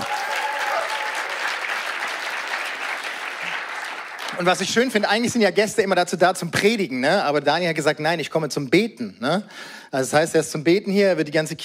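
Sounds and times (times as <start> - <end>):
large crowd applauding: 0.0 - 5.0
speech: 4.4 - 11.6.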